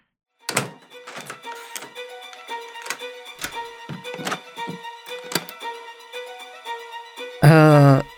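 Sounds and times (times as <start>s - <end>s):
several door locks being turned and latched: 0.5s - 5.6s.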